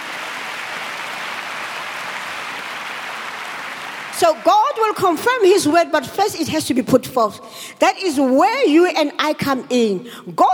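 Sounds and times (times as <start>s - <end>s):
audience hand clapping: 0.0s - 4.5s
speech: 4.2s - 10.5s.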